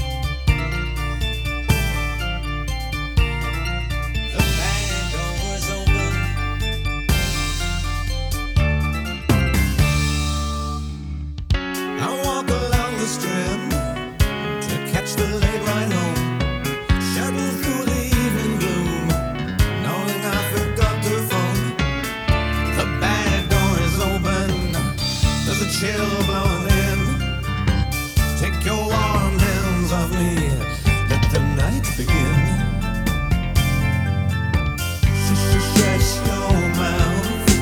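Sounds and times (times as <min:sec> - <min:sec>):
drums: 0:00.0 - 0:37.6.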